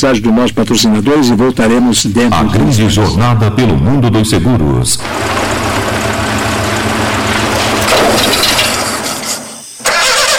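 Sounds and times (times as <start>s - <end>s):
speech: 0.0s - 5.9s
car engine cranking but failing to start: 5.0s - 10.3s.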